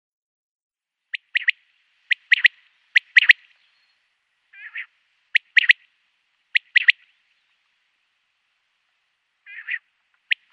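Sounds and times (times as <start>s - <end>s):
male common quail display call: 1.1s - 3.8s, 4.5s - 7.6s, 9.4s - 10.5s.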